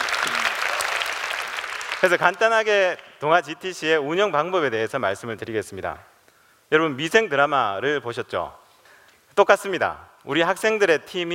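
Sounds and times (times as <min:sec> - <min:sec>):
audience clapping: 0:00.0 - 0:03.2
speech: 0:02.0 - 0:06.1, 0:06.7 - 0:08.6, 0:09.4 - 0:11.3.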